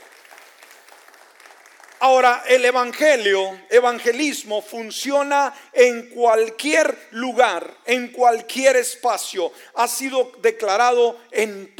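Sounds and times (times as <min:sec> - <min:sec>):
audience applauding: 0:00.0 - 0:02.4
speech: 0:02.0 - 0:11.7.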